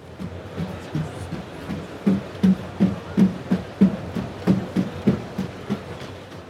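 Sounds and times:
four-legged robot walking on stairs: 0.0s - 6.4s.

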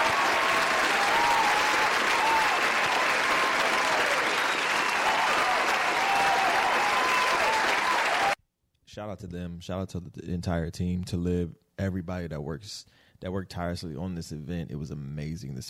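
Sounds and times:
audience applause: 0.0s - 8.4s
speech: 9.0s - 15.6s.

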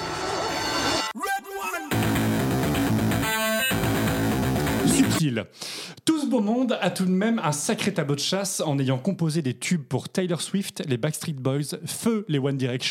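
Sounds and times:
thick music of a music producer's jingle: 0.0s - 5.2s
processed voice-like bursts in a music producer's signature jingle: 4.8s - 5.3s
speech: 5.2s - 12.8s.

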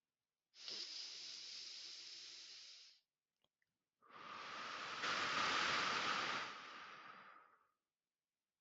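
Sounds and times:
slow deep breath during a guided relaxation exercise: 0.6s - 3.0s, 4.1s - 7.8s.

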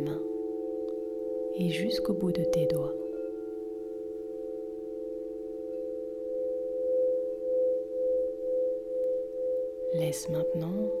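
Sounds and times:
crystal singing bowls ringing: 0.0s - 10.9s
speech: 1.6s - 3.0s, 9.9s - 10.9s.

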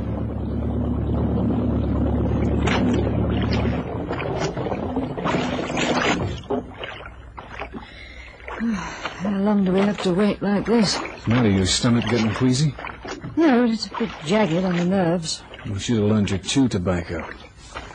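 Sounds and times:
boat motor humming: 0.0s - 17.9s
water lapping and sloshing against the hull: 0.0s - 17.9s
speech: 9.5s - 17.4s.

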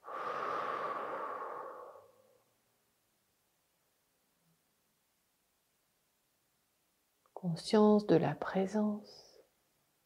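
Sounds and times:
long breathy exhale in a sophrology relaxation exercise: 0.0s - 2.5s
speech: 7.4s - 9.3s.

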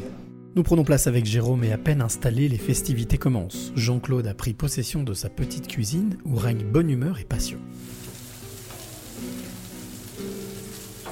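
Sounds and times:
speech: 0.6s - 8.0s
food crackling and frying in hot pan: 7.7s - 11.1s.

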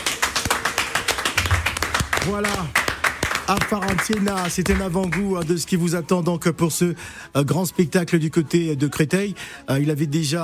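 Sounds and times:
small group applauding in a room: 0.0s - 5.6s
speech: 2.3s - 2.8s, 3.5s - 10.4s.

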